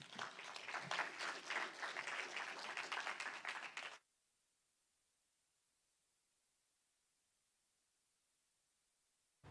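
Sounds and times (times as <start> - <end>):
church congregation applauding to welcome a pastor: 0.0 - 4.0.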